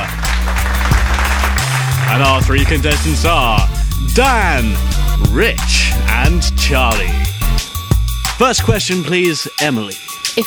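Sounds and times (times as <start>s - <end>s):
audience applause: 0.0s - 3.6s
speech: 2.2s - 7.3s, 8.4s - 10.4s.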